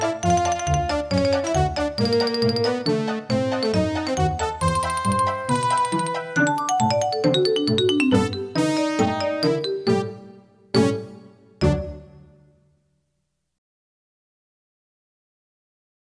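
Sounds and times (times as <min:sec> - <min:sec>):
piano music: 0:00.0 - 0:12.6.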